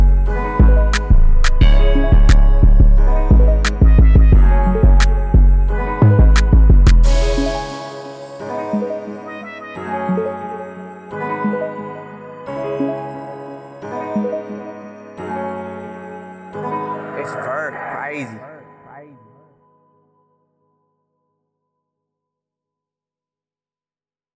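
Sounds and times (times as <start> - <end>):
tranquil Detroit-type hip hop beat in C minor: 0.0 - 10.5, 16.6 - 19.3.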